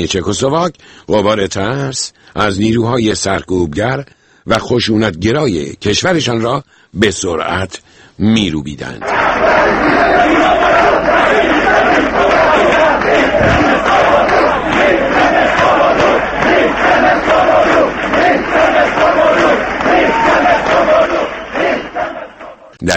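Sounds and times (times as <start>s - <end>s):
speech: 0.0s - 12.1s, 22.8s - 22.9s
crowd of protesters shouting slogans: 9.0s - 22.8s.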